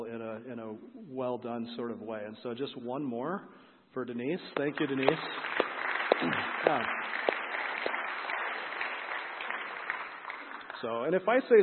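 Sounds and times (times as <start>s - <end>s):
speech: 0.4s - 5.6s, 6.2s - 7.3s, 10.8s - 11.6s
crowd applause: 4.6s - 11.0s.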